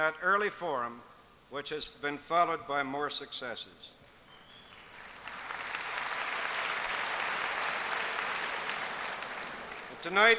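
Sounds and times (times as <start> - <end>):
speech: 0.0 - 4.0, 10.0 - 10.3
audience applause at a university event: 4.8 - 10.3.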